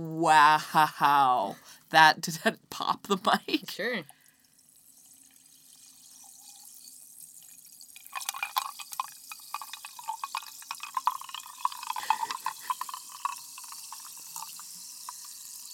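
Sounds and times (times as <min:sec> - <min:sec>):
speech: 0:00.0 - 0:04.2
sparkling mineral water fizzing and pouring: 0:03.5 - 0:15.7.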